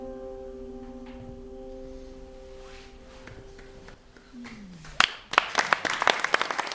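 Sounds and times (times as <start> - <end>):
audience applause: 3.5 - 6.7.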